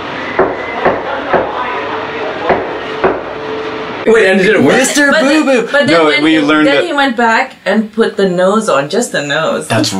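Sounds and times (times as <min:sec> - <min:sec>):
sharp wooden knocks on a door: 0:00.4 - 0:01.5, 0:02.5 - 0:03.3
speech: 0:04.1 - 0:09.9.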